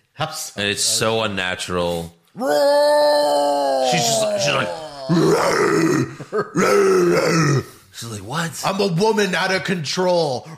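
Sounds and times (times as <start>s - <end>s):
speech: 0.2s - 10.5s
voice imitating a loud roar: 2.4s - 7.7s.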